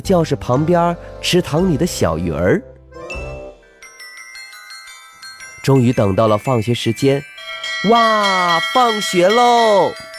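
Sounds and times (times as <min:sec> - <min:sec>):
speech: 0:00.0 - 0:02.7, 0:05.6 - 0:10.1
school dismissal bell ringing: 0:03.6 - 0:10.1.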